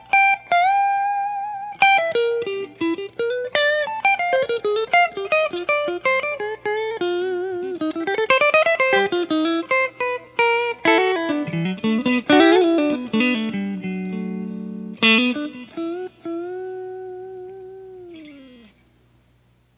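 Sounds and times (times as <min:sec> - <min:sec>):
clean blues guitar solo: 0:00.0 - 0:19.7.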